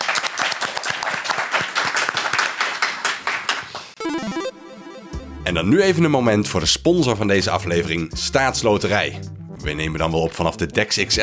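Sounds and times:
audience applause: 0.0 - 4.0
speech: 5.5 - 11.2.

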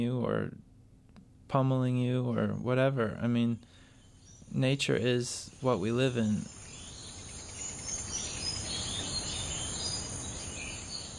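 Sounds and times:
speech: 0.0 - 0.7, 1.5 - 3.8, 4.5 - 6.6
faint chirps: 3.6 - 11.1
night insects trilling on the Micronesian island of Pohnpei: 4.0 - 11.1.

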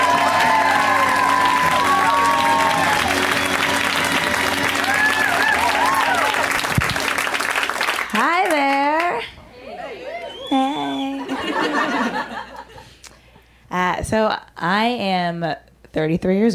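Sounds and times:
audience whoops and shouts: 0.0 - 3.8, 4.8 - 6.6
stand-up comedy show audience clapping: 0.0 - 9.2
laughter: 9.6 - 13.0
speech: 14.1 - 16.5.

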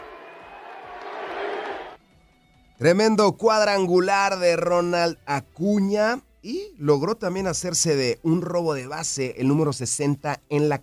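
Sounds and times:
stadium crowd chanting MVP: 0.0 - 2.0
speech: 2.8 - 10.8.

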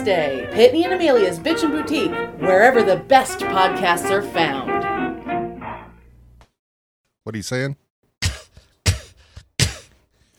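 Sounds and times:
speech: 0.0 - 4.8, 7.2 - 7.8
person imitating a cat hacking up a hairball: 8.2 - 10.0.

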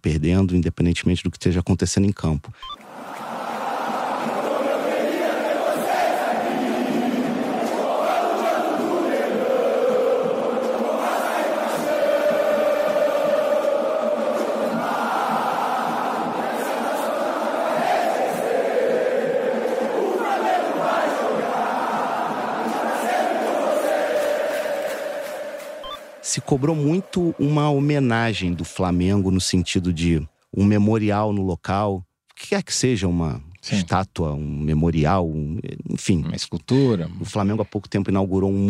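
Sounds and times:
speech: 0.0 - 2.8, 26.5 - 38.6
football supporters singing in stadium: 2.8 - 28.2.

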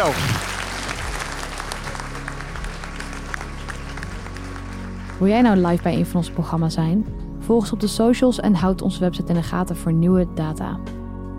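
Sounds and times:
speech: 0.0 - 0.5, 5.2 - 11.0
applause: 0.0 - 6.5.

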